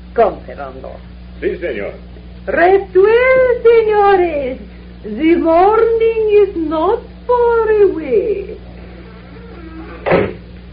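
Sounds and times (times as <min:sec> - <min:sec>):
faint steady hum: 0:00.0 - 0:10.7
speech: 0:00.2 - 0:08.7
door slamming shut: 0:09.8 - 0:10.5.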